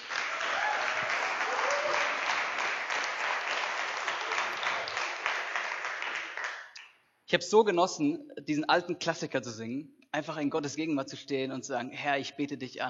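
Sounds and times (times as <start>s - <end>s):
audience applause: 0.0s - 6.7s
speech: 7.3s - 12.8s.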